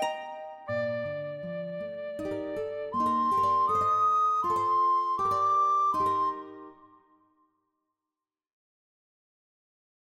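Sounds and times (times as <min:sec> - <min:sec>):
guitar playing a bransle: 0:00.0 - 0:07.0
harp playing a bransle: 0:00.0 - 0:07.4
alto recorder playing a bransle: 0:00.5 - 0:07.1.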